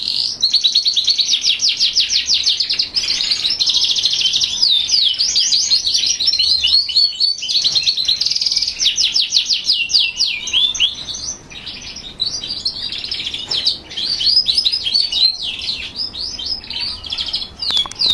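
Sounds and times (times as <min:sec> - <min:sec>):
northern budgerigar singing: 0:00.0 - 0:18.1.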